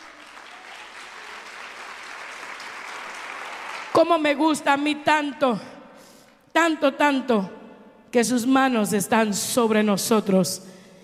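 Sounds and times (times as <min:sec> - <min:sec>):
audience applauding: 0:00.0 - 0:04.0
speech: 0:04.0 - 0:05.7, 0:06.6 - 0:10.8.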